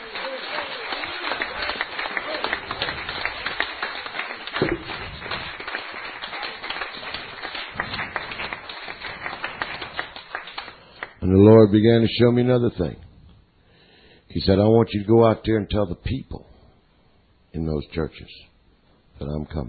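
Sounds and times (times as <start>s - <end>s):
audience clapping: 0.0s - 11.2s
speech: 11.4s - 13.0s, 14.3s - 16.4s, 17.5s - 18.5s, 19.2s - 19.6s.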